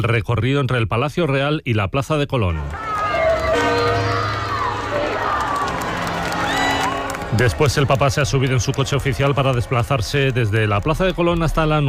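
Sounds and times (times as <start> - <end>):
speech: 0.0 - 2.9, 7.3 - 11.8
crowd shouting a chant: 2.5 - 11.8
crowd chanting: 2.6 - 8.1.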